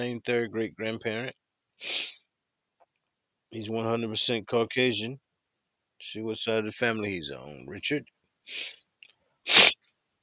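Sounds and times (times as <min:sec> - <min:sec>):
speech: 0:00.0 - 0:02.2, 0:03.5 - 0:05.2, 0:06.0 - 0:08.8
sharp inhaled breath: 0:01.8 - 0:02.2, 0:08.5 - 0:08.8, 0:09.5 - 0:09.8
faint sniff: 0:01.8 - 0:02.3, 0:08.5 - 0:08.8, 0:09.4 - 0:09.8
loud sneeze: 0:09.5 - 0:09.8.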